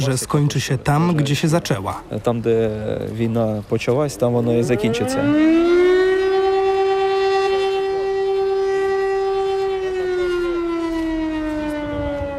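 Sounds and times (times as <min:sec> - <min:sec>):
speech: 0:00.0 - 0:05.7
air raid siren: 0:04.4 - 0:12.3.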